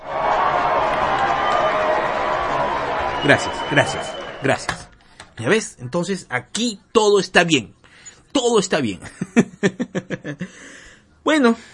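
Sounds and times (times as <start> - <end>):
audience applause: 0.0 - 4.7
speech: 3.2 - 4.8, 5.4 - 11.7
laughter: 9.0 - 10.5.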